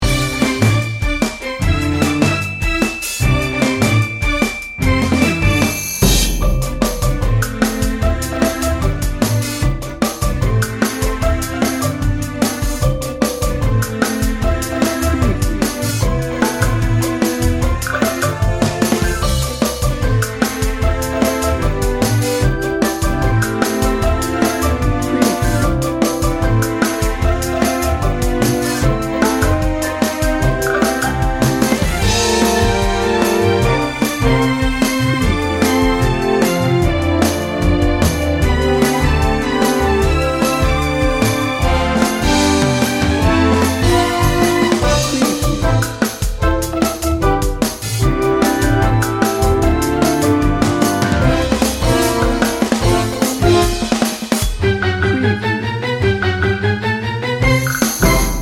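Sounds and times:
1950s game show music: 0.0 - 58.4.

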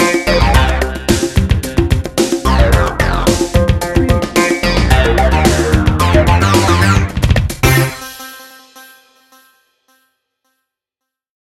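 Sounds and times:
feel-good funk music bed: 0.0 - 8.9.

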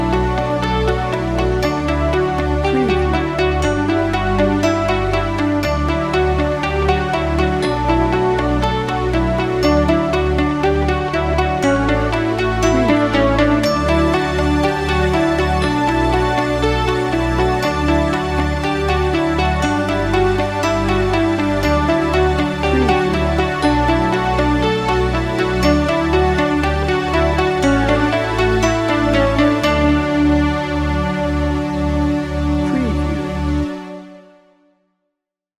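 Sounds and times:
upbeat positive music without drums: 0.0 - 34.2.

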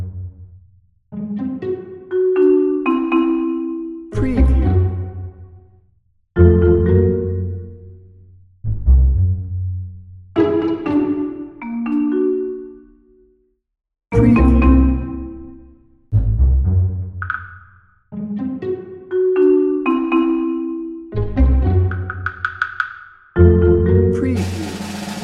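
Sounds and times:
quirky pizzicato strings: 1.1 - 5.5, 6.4 - 7.8, 10.4 - 12.6, 14.1 - 25.2.

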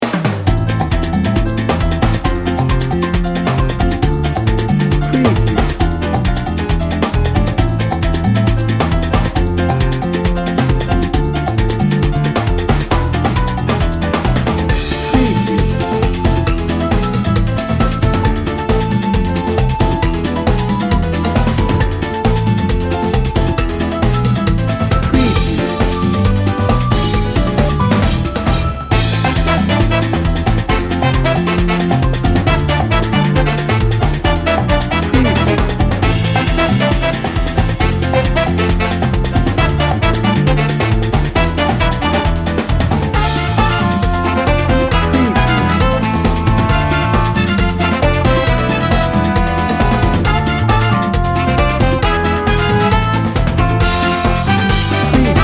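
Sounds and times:
latin party music: 0.0 - 55.4.

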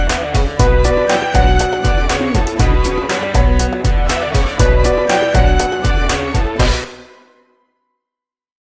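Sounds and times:
Bollywood temple dance music: 0.6 - 6.9.

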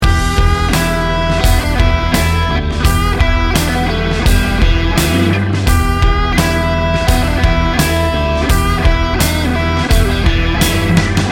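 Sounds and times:
music loop: 0.0 - 11.3.

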